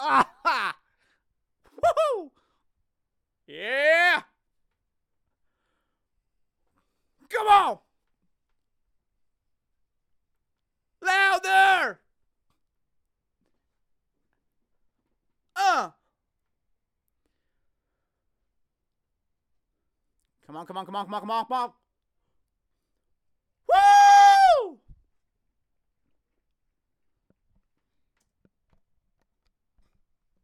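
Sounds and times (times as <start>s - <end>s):
young man screaming excitedly: 0.0s - 0.8s, 1.7s - 2.3s, 3.5s - 4.3s, 7.3s - 7.8s, 11.0s - 12.0s, 15.6s - 16.0s, 23.7s - 24.8s.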